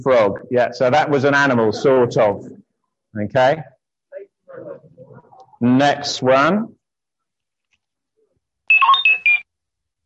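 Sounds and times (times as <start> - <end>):
speech: 0.0 - 3.7, 5.6 - 6.8
R2-D2 robot beeps: 8.7 - 9.4.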